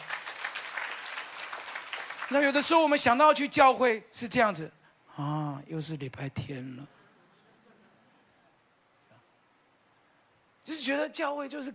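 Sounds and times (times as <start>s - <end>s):
audience clapping: 0.0s - 3.0s
speech: 2.3s - 7.0s, 10.7s - 11.7s.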